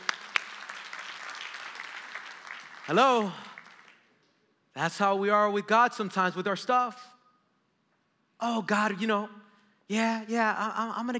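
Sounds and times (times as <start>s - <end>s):
audience applause: 0.0s - 4.0s
speech: 2.9s - 3.4s, 4.8s - 7.1s, 8.4s - 11.1s.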